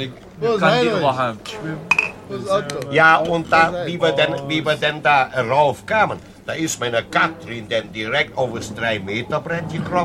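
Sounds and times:
speech: 0.0 - 10.0
glasses clinking in a toast: 1.9 - 2.3.

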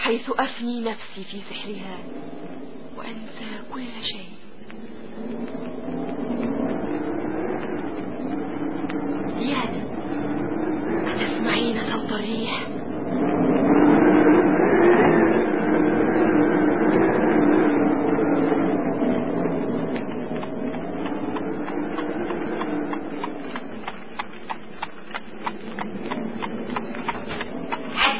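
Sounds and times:
humming tonal bed: 0.0 - 28.1
speech: 0.1 - 5.6
horse-drawn carriages arriving carrying travellers from Whitecross: 20.3 - 28.1.

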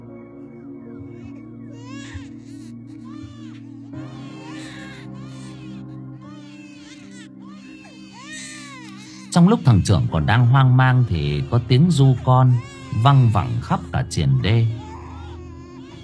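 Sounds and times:
babies crying at night: 0.5 - 16.0
speech: 9.4 - 14.8.

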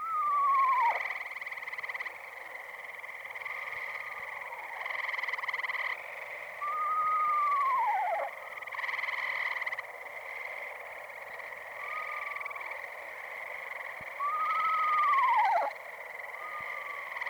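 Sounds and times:
little screech owl calling: 0.0 - 1.4, 3.4 - 9.5, 11.6 - 12.7, 14.1 - 17.2.

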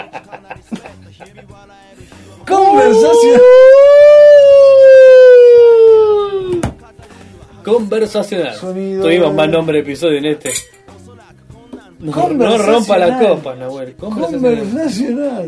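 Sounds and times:
laughter: 0.0 - 1.6
speech: 1.2 - 3.8, 7.7 - 10.8, 12.0 - 15.4
alarm siren sound effect: 2.5 - 6.6.

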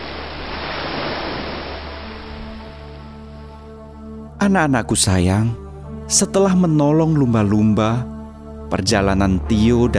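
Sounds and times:
ocean waves: 0.0 - 4.1
speech: 4.4 - 8.1, 8.7 - 9.9.

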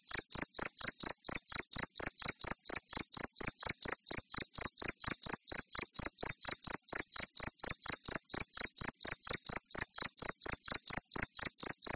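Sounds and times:
cricket chirping rapidly: 0.1 - 11.9.

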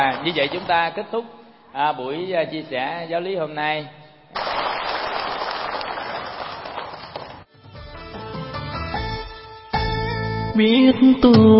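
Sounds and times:
speech: 0.2 - 4.7, 10.6 - 11.5
audience clapping: 4.4 - 7.5
instrumental music with sustained tones: 7.5 - 11.5.

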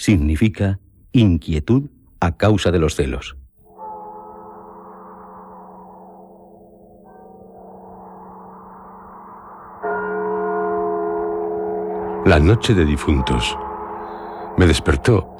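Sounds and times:
speech: 0.0 - 3.4, 12.2 - 13.6, 14.6 - 15.3
church bells tolling a death knell: 3.7 - 15.3.

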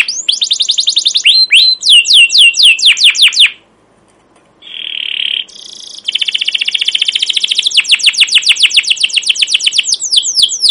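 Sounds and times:
captive canary singing fast chattering trills and slurred whistles: 0.0 - 3.6, 4.6 - 10.6.

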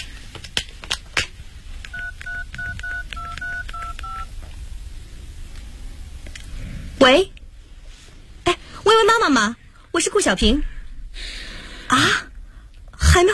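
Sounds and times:
telephone keypad dialing tones: 1.9 - 4.3
speech: 7.0 - 7.4, 8.9 - 11.3, 11.9 - 12.2.

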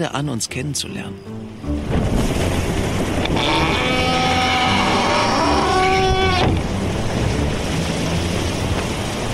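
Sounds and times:
speech: 0.0 - 2.2
sea noise: 0.0 - 9.3
wind rushing on a sailboat: 1.4 - 9.3
creaking groan: 3.2 - 6.8.

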